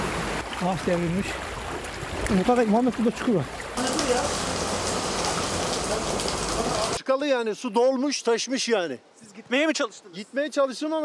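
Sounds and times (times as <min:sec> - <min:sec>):
heavy rain: 0:00.0 - 0:07.0
speech: 0:00.6 - 0:01.5, 0:02.2 - 0:04.5, 0:05.9 - 0:11.0.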